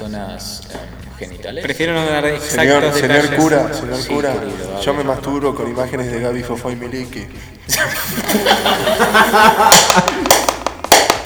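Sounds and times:
speech: 0:00.0 - 0:10.1
laughter: 0:00.0 - 0:11.2
applause: 0:08.3 - 0:11.2.

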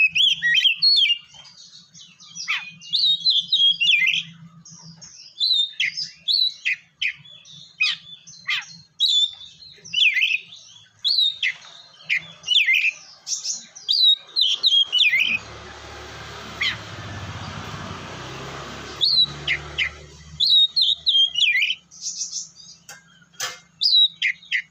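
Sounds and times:
Oriental magpie-robin song of whistles and trills: 0:00.0 - 0:24.6
broad rumbling noise: 0:14.3 - 0:21.4.

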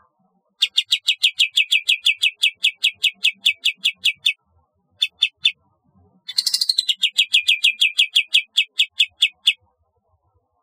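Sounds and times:
bulbul giving rapid high chattering trills: 0:00.6 - 0:04.4, 0:05.0 - 0:05.5, 0:06.3 - 0:09.6.

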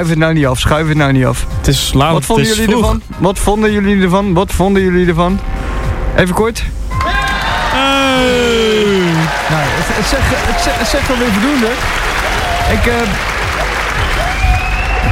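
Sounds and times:
speech: 0:00.0 - 0:05.6, 0:06.2 - 0:07.0, 0:08.2 - 0:08.8, 0:09.4 - 0:13.7
long applause: 0:06.9 - 0:15.1.

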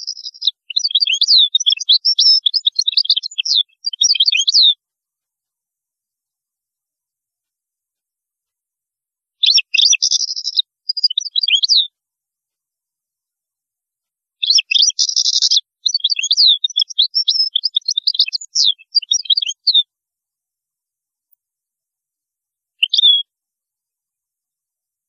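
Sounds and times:
European goldfinch twittering: 0:00.0 - 0:04.8, 0:09.4 - 0:11.9, 0:14.4 - 0:19.8, 0:22.8 - 0:23.2.

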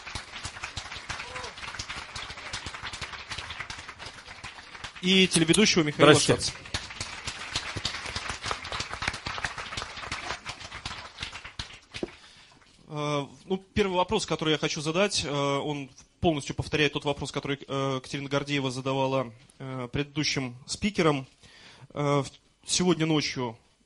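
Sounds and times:
audience applause welcoming guests on stage: 0:00.0 - 0:12.2
speech: 0:05.0 - 0:06.7, 0:14.0 - 0:23.6.

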